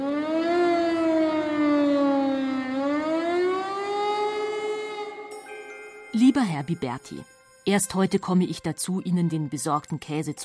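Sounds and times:
air raid siren wailing over Berlin: 0.0s - 5.3s
speech: 6.3s - 10.4s.

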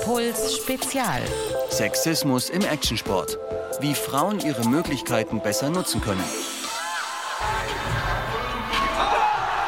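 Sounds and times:
speech: 0.1s - 6.6s
cheering crowd at action sports contest: 6.6s - 9.6s.

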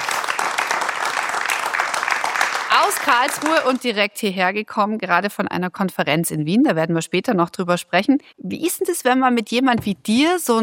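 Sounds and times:
live audience applauding a disaster researcher at a science talk event: 0.0s - 3.9s
speech: 2.9s - 10.6s.

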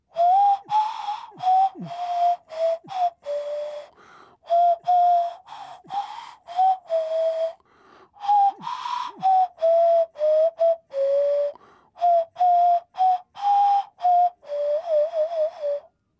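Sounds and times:
nose flute playing a German folk tune: 0.0s - 7.6s, 8.2s - 16.0s.

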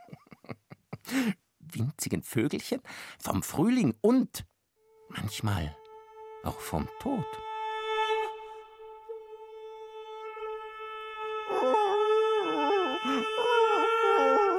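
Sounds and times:
speech: 1.1s - 4.5s, 5.1s - 5.8s, 6.4s - 7.5s
greyhound howling and whimpering: 11.2s - 14.5s.

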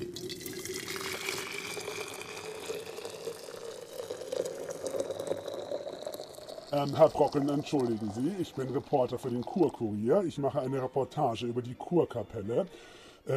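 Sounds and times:
hot onion tea being poured: 0.0s - 10.3s
speech: 6.7s - 13.3s.

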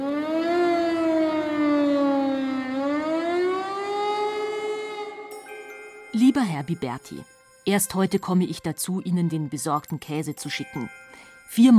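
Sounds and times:
air-raid siren wailing: 0.0s - 5.3s
speech: 6.3s - 11.7s.

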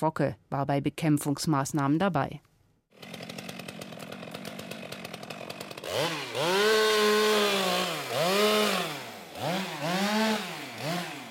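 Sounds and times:
speech: 0.0s - 3.2s
harvester motorized saw cutting into a maple tree: 3.0s - 11.2s.

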